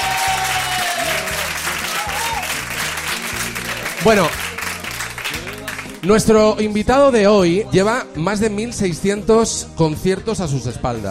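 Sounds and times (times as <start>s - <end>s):
audience applause: 0.0s - 6.0s
low rhythmic music bed: 0.0s - 11.0s
speech: 4.0s - 4.5s, 6.0s - 11.0s.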